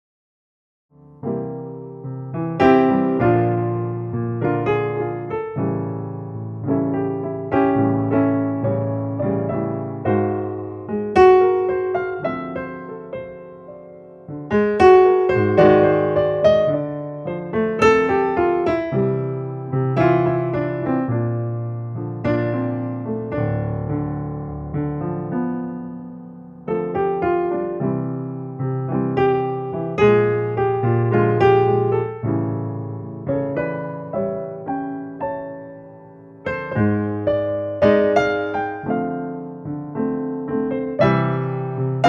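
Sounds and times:
late night lounge piano: 0:00.9 - 0:42.0.

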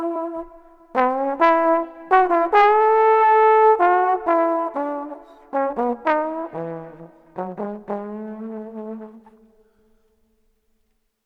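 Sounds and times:
melancholy trombone melody in the street: 0:00.0 - 0:09.4.

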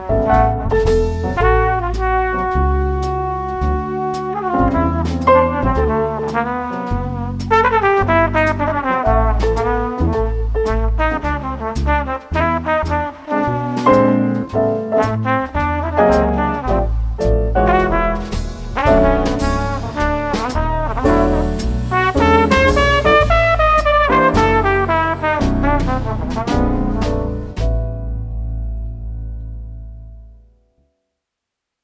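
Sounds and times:
cool trumpet: 0:00.0 - 0:28.0
jazz piano trio: 0:00.0 - 0:30.7.

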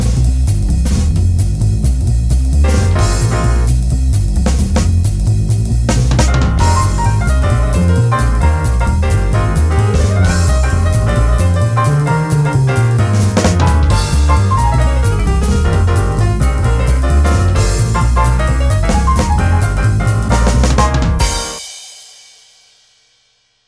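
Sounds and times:
upbeat jazz piano trio: 0:00.0 - 0:21.6.

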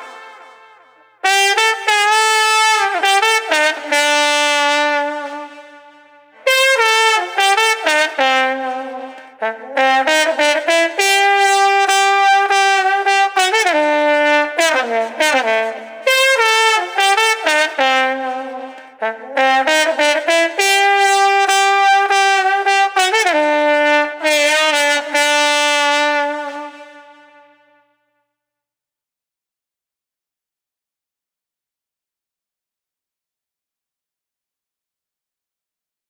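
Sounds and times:
lonesome street trumpet solo: 0:00.0 - 0:27.8.

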